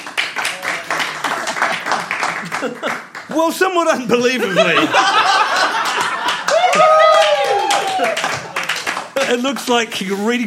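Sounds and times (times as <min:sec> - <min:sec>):
audience applause: 0:00.0 - 0:10.4
laughter: 0:01.2 - 0:03.2, 0:03.9 - 0:09.6
speech: 0:02.6 - 0:05.4, 0:09.3 - 0:10.4.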